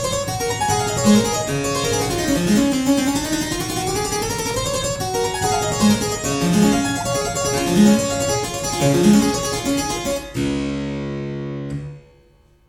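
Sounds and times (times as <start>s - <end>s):
harpsichord sonata in G major: 0.0s - 12.0s.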